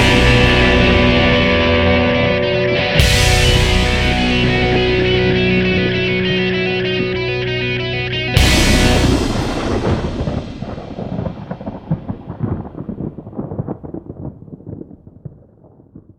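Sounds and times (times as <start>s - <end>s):
hip hop music: 0.0s - 10.3s.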